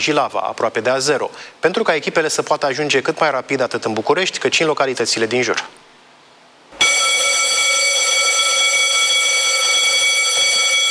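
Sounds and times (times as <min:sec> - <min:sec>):
speech: 0:00.0 - 0:05.8
fire station alarm calling CBRN firefighters to an intervention: 0:06.8 - 0:10.8.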